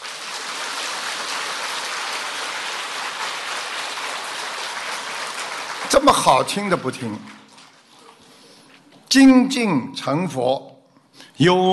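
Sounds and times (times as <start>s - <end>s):
audience applause: 0.0s - 7.9s
speech: 5.9s - 7.4s, 9.1s - 11.7s.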